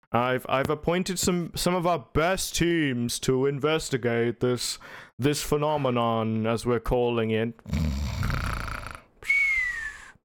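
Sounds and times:
speech: 0.1 - 8.4
exaggerated snore: 7.7 - 9.1.

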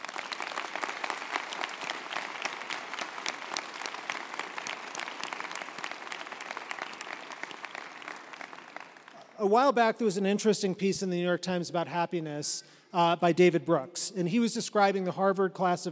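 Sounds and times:
audience applause: 0.0 - 9.2
speech: 9.4 - 15.8.

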